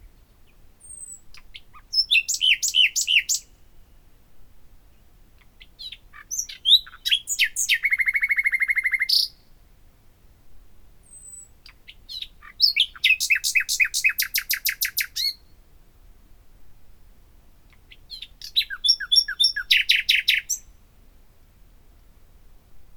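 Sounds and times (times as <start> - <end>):
common nightingale Luscinia megarhynchos singing: 0.0 - 3.6, 5.0 - 9.5, 11.0 - 15.6, 17.7 - 20.8.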